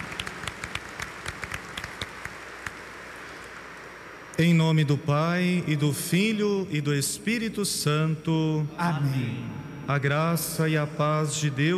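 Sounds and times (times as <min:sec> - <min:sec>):
audience applause: 0:00.0 - 0:03.8
speech: 0:04.4 - 0:11.7.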